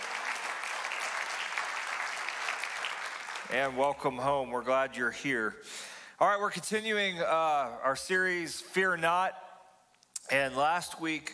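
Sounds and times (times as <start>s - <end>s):
church congregation applauding first-time guests: 0.0s - 3.9s
speech: 3.5s - 9.4s, 10.3s - 11.3s.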